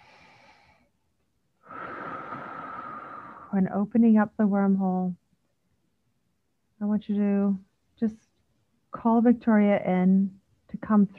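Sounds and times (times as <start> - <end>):
deep breath drawn through the airway: 0.0 - 1.0, 1.6 - 3.6
speech: 3.5 - 5.2, 6.8 - 8.3, 8.9 - 11.1.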